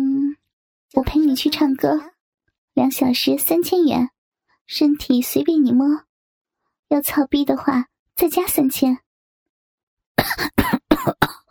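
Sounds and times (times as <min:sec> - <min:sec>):
speech: 0:00.9 - 0:02.1, 0:02.8 - 0:04.1, 0:04.7 - 0:06.1, 0:06.9 - 0:09.0, 0:10.2 - 0:11.2
coughing from cigarette smoke: 0:10.2 - 0:11.4.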